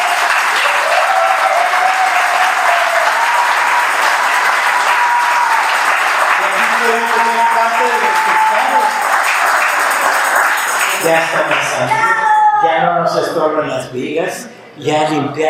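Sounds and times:
audience applause: 0.0s - 12.1s
speech: 6.9s - 9.0s, 11.0s - 15.4s.

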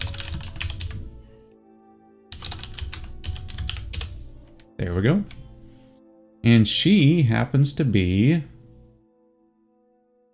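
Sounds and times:
rapid typing on a computer keyboard: 0.0s - 1.1s, 2.3s - 4.2s
steady music: 0.0s - 10.3s
speech: 4.8s - 5.4s, 6.4s - 8.5s.

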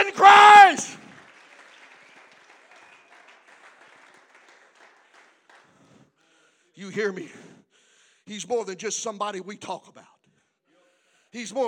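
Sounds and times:
audience clapping hands: 0.0s - 6.1s
speech: 7.0s - 7.5s, 8.3s - 10.1s, 11.3s - 11.6s.

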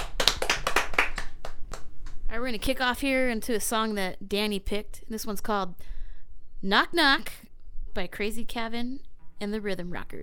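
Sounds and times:
applause after a guest introduction: 0.0s - 2.2s
speech: 2.4s - 5.9s, 6.6s - 7.4s, 8.0s - 10.2s.

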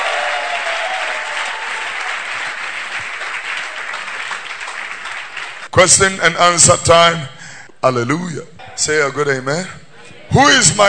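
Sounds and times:
audience clapping: 0.0s - 5.7s
speech: 5.8s - 10.8s.

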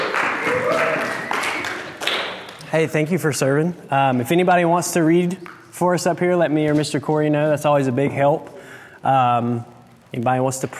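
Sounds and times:
audience applause: 0.0s - 2.6s
speech: 2.7s - 10.7s.

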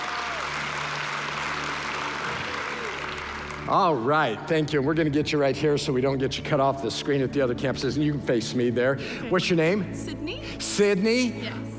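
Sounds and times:
applause: 0.0s - 4.4s
speech: 3.7s - 11.7s.

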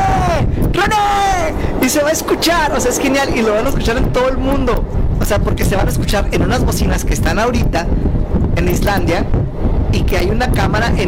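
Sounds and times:
wind blowing over a live microphone: 0.0s - 11.0s
speech: 1.9s - 11.0s.

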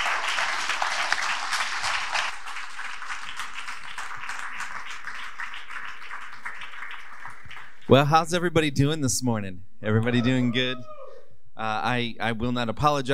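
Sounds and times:
church audience applauding to welcome a guest pastor: 0.0s - 8.1s
speech: 7.9s - 11.0s, 11.6s - 13.1s.

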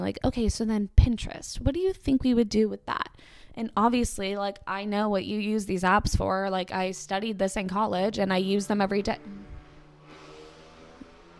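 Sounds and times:
speech: 0.0s - 9.5s
loud motorcycle: 8.6s - 11.3s.

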